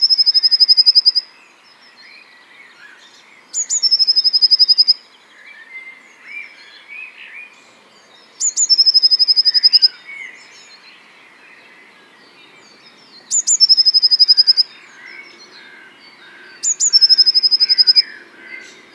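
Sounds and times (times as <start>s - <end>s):
blue tit singing: 2.0s - 5.0s, 5.6s - 18.9s.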